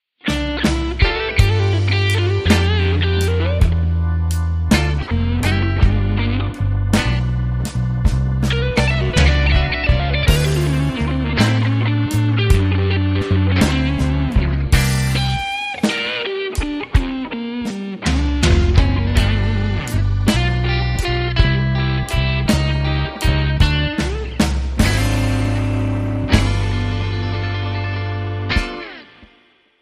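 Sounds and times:
blues music: 0.0 - 29.7.

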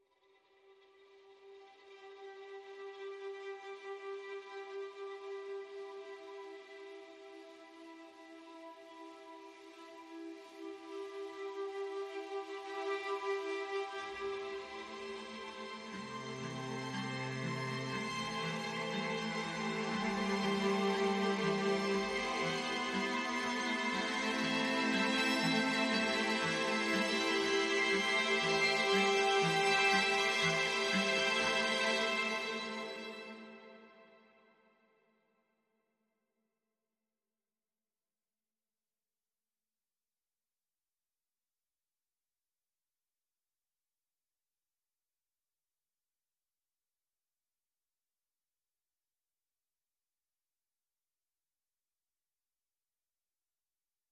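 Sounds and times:
string instruments: 0.3 - 34.4.

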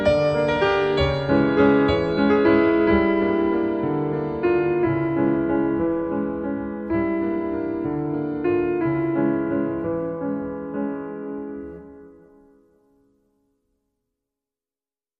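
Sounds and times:
waltz music: 0.0 - 11.5.

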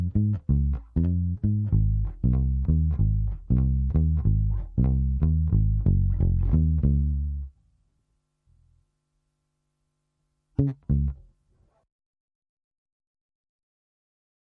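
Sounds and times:
bass: 0.0 - 7.7, 10.6 - 11.4.

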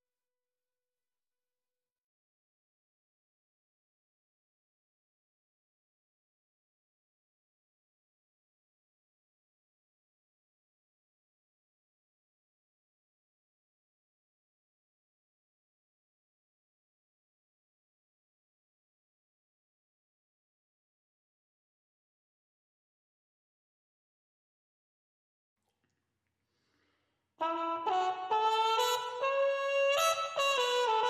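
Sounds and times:
trumpets: 27.4 - 31.0.

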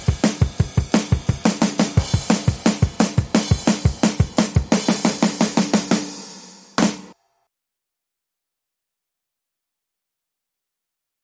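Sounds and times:
drums: 0.0 - 7.2.

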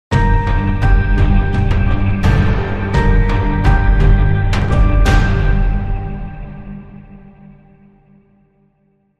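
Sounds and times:
lurking danger music sting: 0.3 - 7.8.

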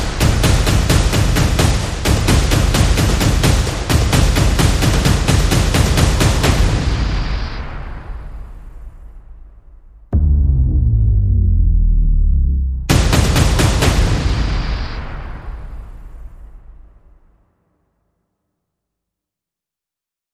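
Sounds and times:
percussion: 0.0 - 9.4, 12.9 - 16.6
sound effects: 10.2 - 13.9.

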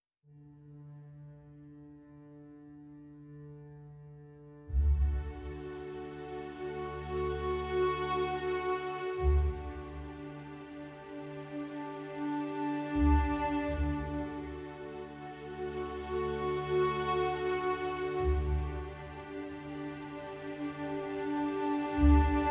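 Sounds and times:
strings: 0.3 - 22.4.

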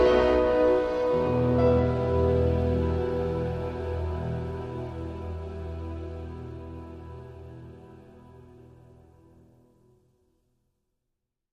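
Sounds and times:
clarinet melody: 0.0 - 8.0.

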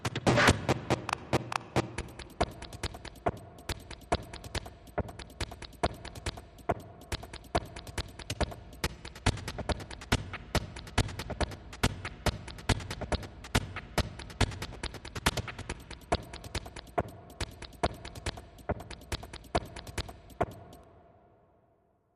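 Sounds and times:
layered glitch loop: 0.1 - 20.8.

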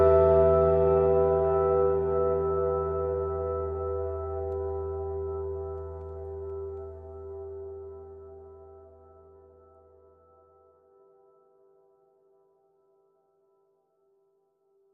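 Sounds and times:
guitar: 0.0 - 11.6.

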